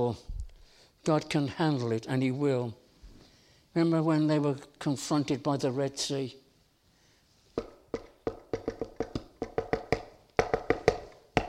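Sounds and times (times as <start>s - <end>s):
speech: 0.0s - 0.4s, 1.0s - 2.8s, 3.7s - 6.4s
hand taps imitating horse hoofbeats: 7.6s - 11.4s.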